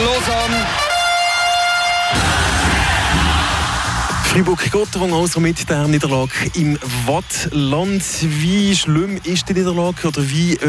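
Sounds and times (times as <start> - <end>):
goal horn blaring: 0.0 - 2.2
ice rink crowd roaring after goal: 0.0 - 4.3
speech: 4.4 - 10.6.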